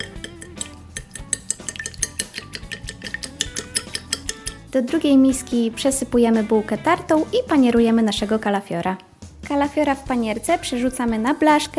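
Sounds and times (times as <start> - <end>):
egg beaten with a fork in bowl: 0.0 - 4.8
speech: 4.7 - 11.7.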